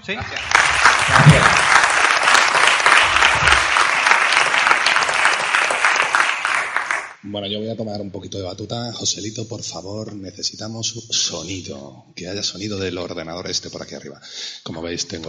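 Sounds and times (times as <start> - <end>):
speech: 0.0 - 1.7, 7.3 - 15.2
audience applause: 0.0 - 7.2.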